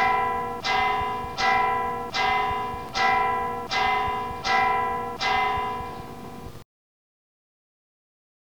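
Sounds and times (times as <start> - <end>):
church bells ringing a fire alarm peal: 0.0 - 6.6.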